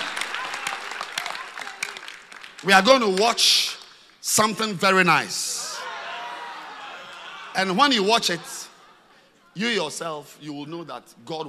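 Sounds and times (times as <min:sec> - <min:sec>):
audience clapping hands: 0:00.0 - 0:04.2
speech: 0:02.6 - 0:05.5, 0:07.6 - 0:08.5, 0:09.6 - 0:11.4.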